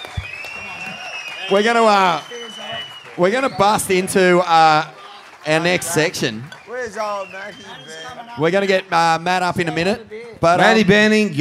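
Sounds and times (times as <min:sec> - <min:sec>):
audience applause: 0:00.0 - 0:09.0
speech: 0:01.5 - 0:02.3, 0:03.2 - 0:11.3.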